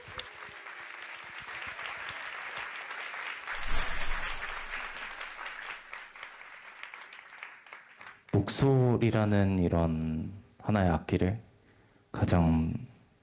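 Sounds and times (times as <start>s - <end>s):
audience applause: 0.0s - 3.6s, 4.3s - 8.1s
speech: 8.4s - 11.5s, 12.2s - 12.9s.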